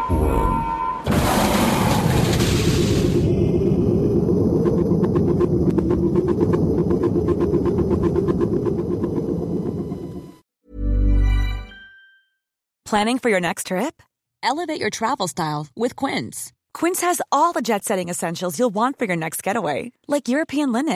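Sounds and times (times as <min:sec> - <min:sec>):
boom: 0:00.1 - 0:06.6
shuttle launch rumble: 0:01.1 - 0:10.4
speech: 0:12.9 - 0:20.9.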